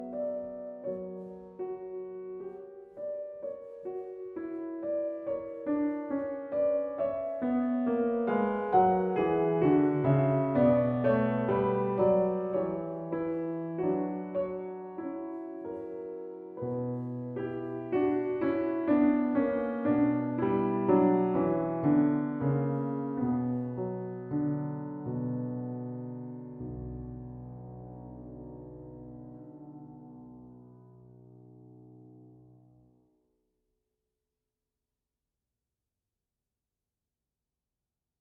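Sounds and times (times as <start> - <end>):
keyboard sonata in B minor: 0.0 - 31.1.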